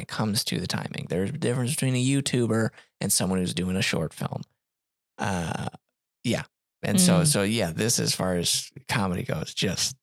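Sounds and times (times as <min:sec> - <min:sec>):
speech: 0:00.0 - 0:04.5, 0:05.2 - 0:10.0
burp: 0:05.2 - 0:05.8.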